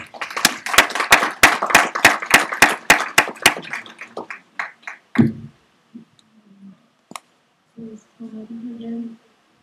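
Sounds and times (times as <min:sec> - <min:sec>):
audience applause: 0:00.0 - 0:05.4.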